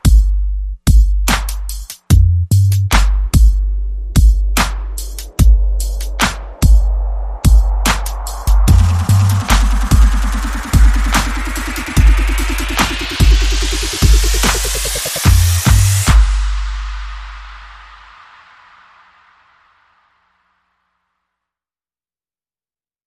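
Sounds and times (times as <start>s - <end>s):
bass: 0.0s - 18.2s
drums: 0.0s - 19.5s.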